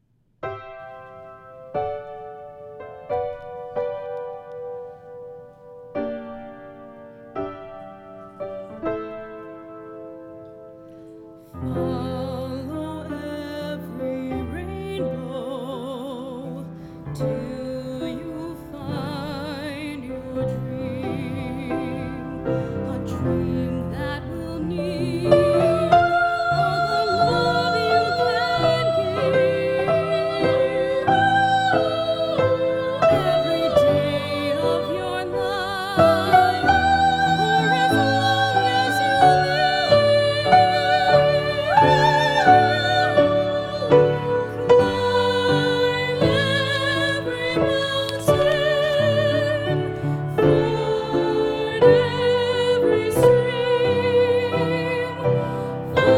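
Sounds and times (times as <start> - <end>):
soprano and choir singing a finale: 11.4 - 56.1.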